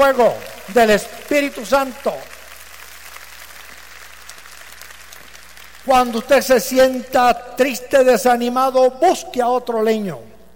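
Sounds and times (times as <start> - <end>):
speech: 0.0 - 2.4, 5.8 - 10.3
audience applause: 0.0 - 6.2
low electrical hum: 0.0 - 10.5.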